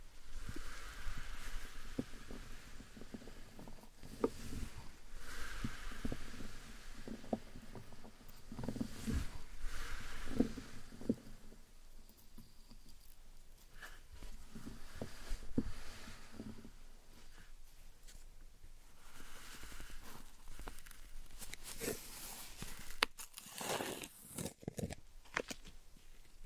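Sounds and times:
slime and sand squished and pressed: 0:00.0 - 0:18.3, 0:18.9 - 0:26.4.

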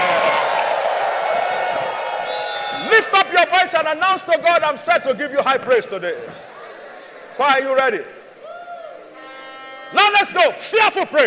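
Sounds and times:
audience cheering and screaming: 0:00.0 - 0:03.6, 0:08.3 - 0:09.2
speech: 0:03.4 - 0:06.5, 0:07.4 - 0:08.2, 0:09.9 - 0:11.2.

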